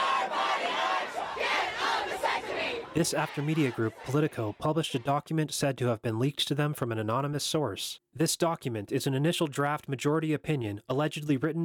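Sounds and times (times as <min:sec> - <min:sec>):
protest crowd chanting outside court: 0:00.0 - 0:05.2
speech: 0:03.0 - 0:11.6.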